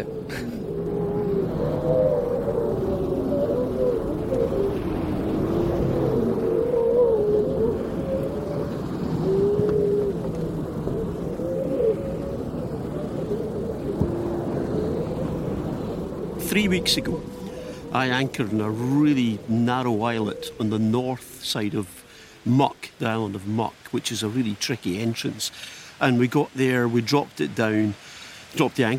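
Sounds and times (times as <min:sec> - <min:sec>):
low rumble: 0:00.0 - 0:19.9
persistent howling at night at anchor: 0:00.0 - 0:22.1
speech: 0:16.7 - 0:28.9.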